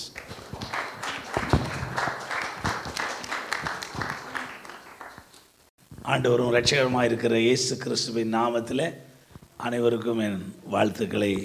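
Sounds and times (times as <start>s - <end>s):
audience clapping to welcome a pastor at a church service: 0.0s - 5.5s
speech: 6.1s - 11.4s.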